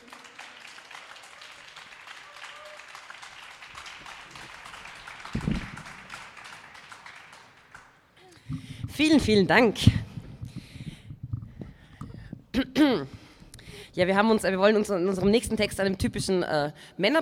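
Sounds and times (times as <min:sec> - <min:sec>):
cheering shout: 0:00.0 - 0:07.4
audience applause for performers: 0:00.0 - 0:08.4
speech: 0:09.0 - 0:10.1, 0:14.0 - 0:17.2.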